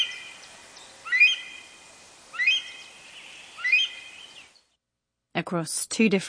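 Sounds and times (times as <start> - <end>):
Himalayan monal pheasant call: 0.0 - 4.6.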